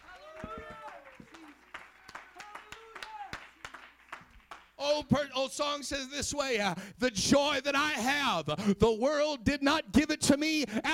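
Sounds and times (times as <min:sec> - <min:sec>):
audience clapping hands: 0:00.0 - 0:05.1
speech: 0:04.8 - 0:10.9.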